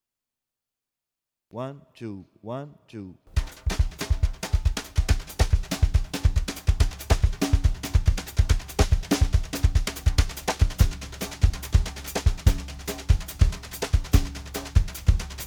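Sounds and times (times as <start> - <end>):
samba drumming with brushes: 3.3 - 15.4.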